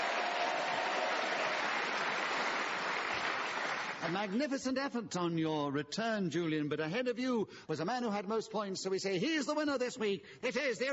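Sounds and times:
audience applause: 0:00.0 - 0:04.4
speech: 0:04.1 - 0:10.9.

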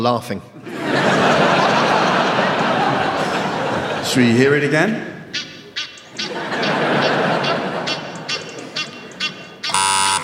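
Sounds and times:
speech: 0:00.0 - 0:01.6, 0:04.0 - 0:05.5
laughter: 0:00.6 - 0:04.7, 0:06.0 - 0:09.7
brief buzzy strongly harmonic blare: 0:09.6 - 0:10.2
Egyptian goose call: 0:09.7 - 0:10.2.

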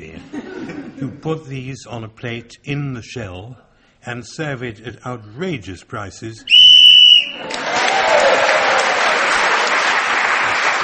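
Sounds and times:
speech: 0:01.0 - 0:06.7
game whistle blowing: 0:06.5 - 0:07.4
audience applause: 0:07.1 - 0:10.8.

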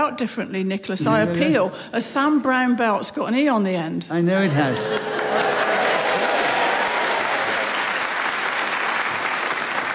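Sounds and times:
speech: 0:00.1 - 0:05.5
audience applause: 0:04.8 - 0:09.9.

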